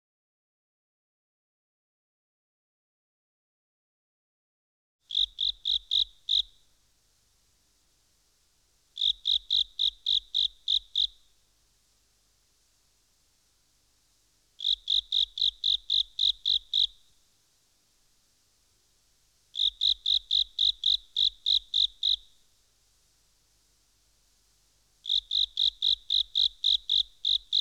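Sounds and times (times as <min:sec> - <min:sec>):
frog calling: 0:05.1 - 0:06.6, 0:09.0 - 0:11.3, 0:14.6 - 0:17.1, 0:19.5 - 0:22.4, 0:25.0 - 0:27.5.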